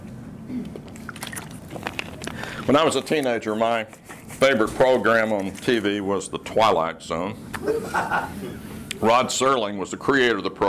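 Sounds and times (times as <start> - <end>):
person drinking water: 0.6 - 2.8
speech: 2.7 - 10.6
laughter: 7.6 - 8.8.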